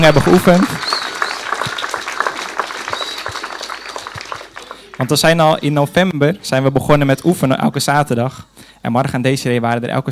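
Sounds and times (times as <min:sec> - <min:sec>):
speech: 0:00.0 - 0:00.8, 0:05.0 - 0:10.0
audience applause: 0:00.0 - 0:06.1.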